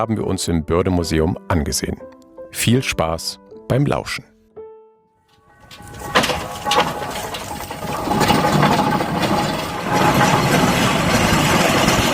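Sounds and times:
speech: 0.0 - 4.3
steam-powered traction engine (Lokomobil) running: 5.6 - 12.1.

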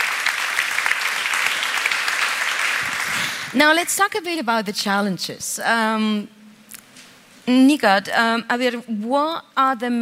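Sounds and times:
audience applause: 0.0 - 3.5
speech: 3.6 - 6.4, 7.5 - 10.0.

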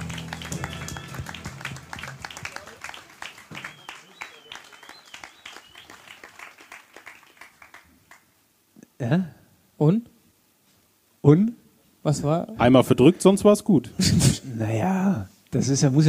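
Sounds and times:
audience applause: 0.0 - 8.3
speech: 9.0 - 10.1, 11.2 - 16.0.

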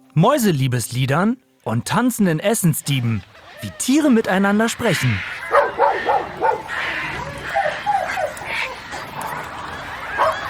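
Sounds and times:
speech: 0.2 - 5.3
dog barking in short yappy bursts: 5.4 - 10.4.

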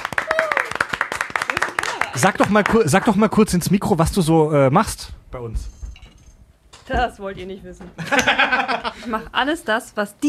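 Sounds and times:
small group clapping to welcome an office assistant: 0.0 - 3.6
high voice cheering: 0.2 - 0.8
speech: 2.2 - 5.8, 6.9 - 10.2
laughter: 8.0 - 9.3.

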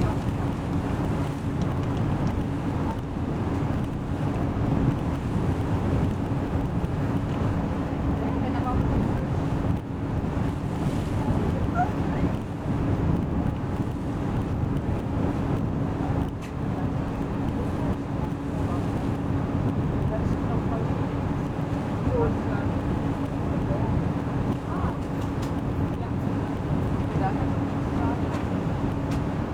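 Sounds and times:
constant low hum: 0.0 - 29.5
ferry engine from Konstanz to Meersburg: 0.0 - 29.5
wind buffeting the microphone: 0.0 - 29.5.

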